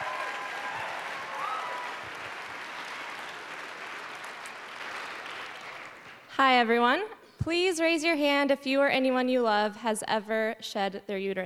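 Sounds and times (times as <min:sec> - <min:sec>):
audience applause: 0:00.0 - 0:06.3
speech: 0:06.4 - 0:11.4.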